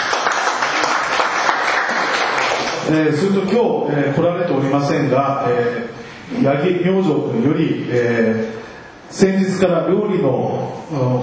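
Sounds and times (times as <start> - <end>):
audience applause: 0.0 - 2.9
speech: 2.9 - 11.2.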